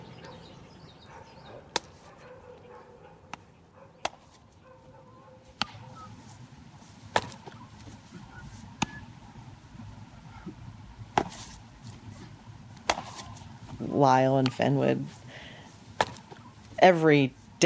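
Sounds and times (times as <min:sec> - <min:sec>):
low hum: 0:00.0 - 0:17.6
baseball smacking into a leather glove: 0:01.7 - 0:02.1, 0:03.3 - 0:04.4, 0:05.5 - 0:05.8, 0:07.1 - 0:07.6, 0:08.8 - 0:09.0, 0:11.1 - 0:12.0, 0:12.8 - 0:13.8, 0:16.0 - 0:16.5
speech: 0:14.0 - 0:15.2, 0:16.8 - 0:17.6.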